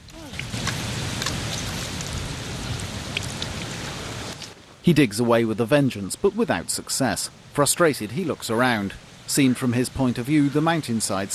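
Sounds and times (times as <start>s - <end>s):
water heard through the ground: 0.0s - 11.3s
speech: 4.8s - 11.3s.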